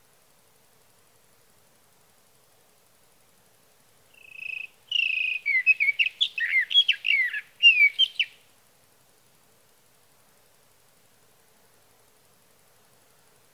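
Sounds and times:
sage thrasher: 4.2 - 8.4.

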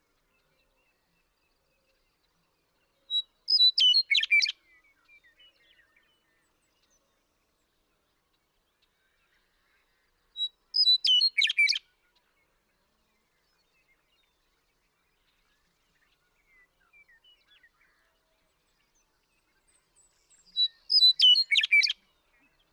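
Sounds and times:
western meadowlark singing: 3.2 - 4.5, 10.4 - 11.8, 20.0 - 22.0.

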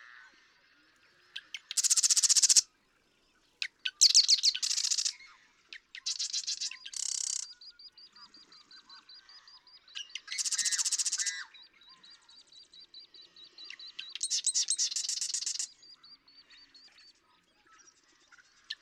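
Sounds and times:
Marsh Wren singing: 1.4 - 2.6, 3.6 - 17.0, 18.7 - 18.8
birds whistling: 3.8 - 5.2, 6.0 - 11.7, 13.4 - 15.8.

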